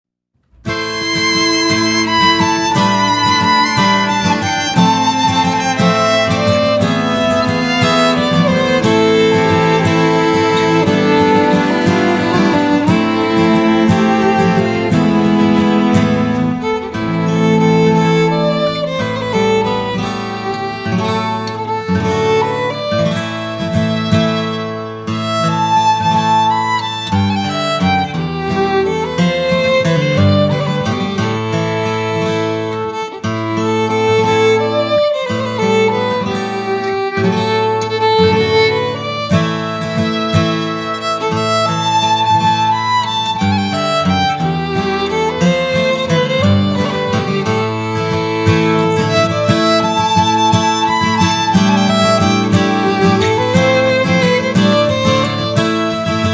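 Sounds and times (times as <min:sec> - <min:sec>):
waltz music: 0:00.7 - 0:24.6, 0:25.2 - 0:56.3.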